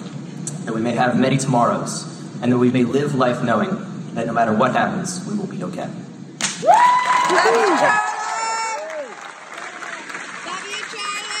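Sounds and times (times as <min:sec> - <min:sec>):
speech: 0:00.7 - 0:08.1
crowd cheering and shouting: 0:06.6 - 0:11.3
applause: 0:06.7 - 0:11.3.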